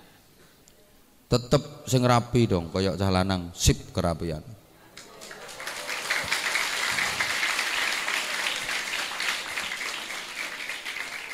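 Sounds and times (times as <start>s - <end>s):
speech: 1.3s - 4.6s
audience applause: 5.0s - 11.3s.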